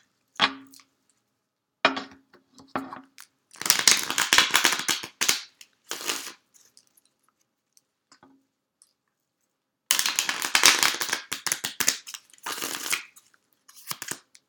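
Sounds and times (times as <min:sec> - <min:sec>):
tarot cards being shuffled and drawn: 0:03.6 - 0:06.8, 0:09.9 - 0:14.3.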